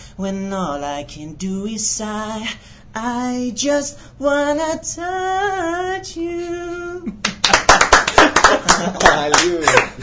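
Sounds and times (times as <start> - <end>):
speech: 0.2 - 7.3, 8.8 - 10.0
laughter: 7.1 - 10.0
rhythmic hand clapping keeping time to a song: 7.2 - 10.0.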